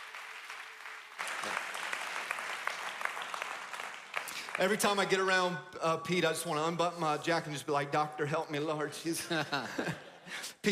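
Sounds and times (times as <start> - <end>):
audience applause: 0.0 - 5.2
speech: 4.6 - 10.6
laughter: 9.2 - 10.6.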